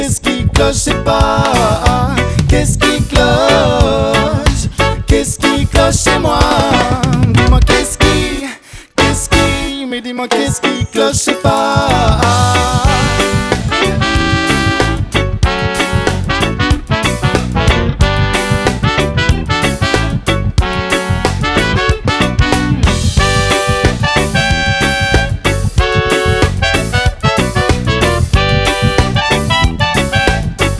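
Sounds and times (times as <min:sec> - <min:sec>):
live dub music: 0:00.0 - 0:30.7.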